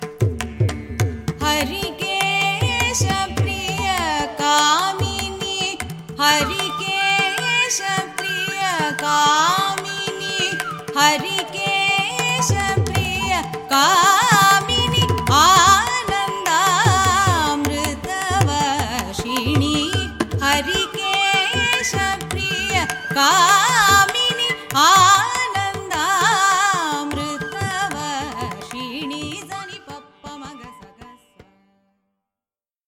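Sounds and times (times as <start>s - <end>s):
Carnatic music: 0.0s - 32.1s.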